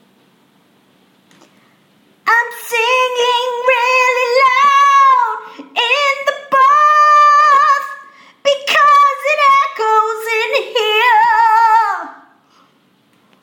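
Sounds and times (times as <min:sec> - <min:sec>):
person singing in the bath: 0:02.3 - 0:12.3.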